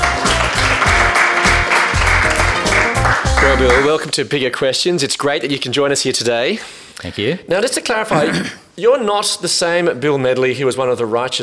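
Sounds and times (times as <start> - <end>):
audience applause welcoming a guest: 0.0 - 4.0
speech: 3.6 - 11.4.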